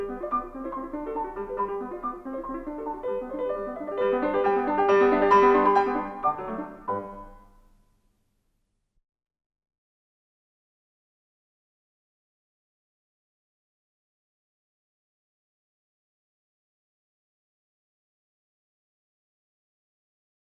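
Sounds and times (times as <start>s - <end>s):
piano sonata in G major: 0.0s - 7.8s.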